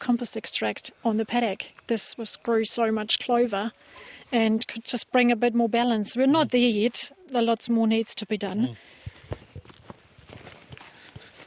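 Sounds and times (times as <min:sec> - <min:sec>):
speech: 0:00.0 - 0:09.0
footsteps on grass and ground crossing a paddock: 0:08.9 - 0:11.4.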